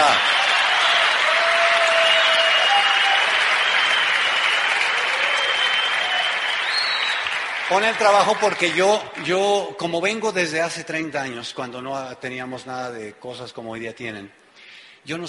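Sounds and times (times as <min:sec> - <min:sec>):
audience applause: 0:00.0 - 0:09.4
speech: 0:07.7 - 0:14.4, 0:15.0 - 0:15.2.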